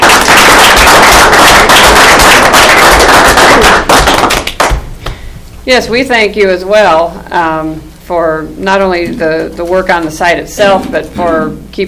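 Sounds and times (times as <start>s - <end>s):
audience applause: 0.0s - 4.8s
speech: 5.6s - 11.8s.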